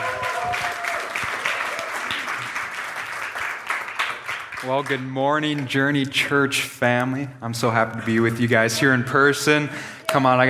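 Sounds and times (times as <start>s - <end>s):
church congregation applauding to welcome a speaker: 0.0s - 5.2s
speech: 4.6s - 10.4s.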